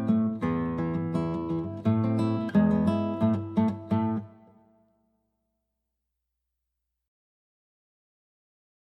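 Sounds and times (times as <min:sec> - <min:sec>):
guitar piece: 0:00.0 - 0:04.9.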